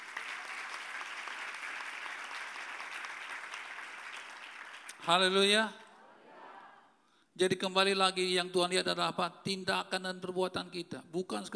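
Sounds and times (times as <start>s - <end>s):
church congregation clapping during a sermon: 0.0s - 5.5s
speech: 5.0s - 5.8s, 7.4s - 11.5s.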